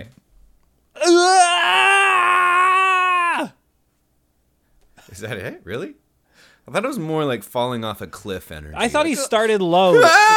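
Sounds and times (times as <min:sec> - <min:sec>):
speech: 0:01.0 - 0:01.8, 0:05.2 - 0:10.3
voice imitating the Wilhelm scream: 0:01.0 - 0:03.6, 0:09.9 - 0:10.3.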